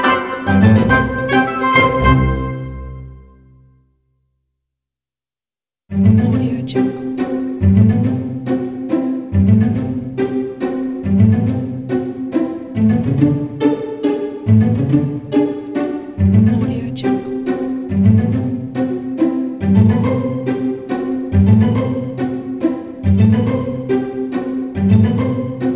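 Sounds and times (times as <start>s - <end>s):
pizzicato strings in comedy cartoon music: 0.0s - 3.4s, 5.9s - 25.7s
woodwinds in comedy cartoon music: 0.0s - 3.4s.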